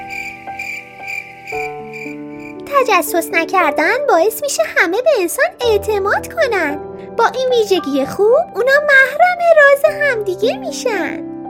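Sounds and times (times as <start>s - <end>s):
cricket chirping by a classroom window: 0.0s - 2.6s
speech: 2.8s - 11.3s.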